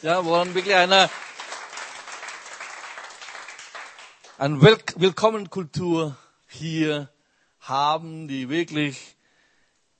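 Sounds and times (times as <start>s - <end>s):
speech: 0.0s - 1.3s, 4.4s - 9.2s
audience applause for guests: 0.0s - 4.5s.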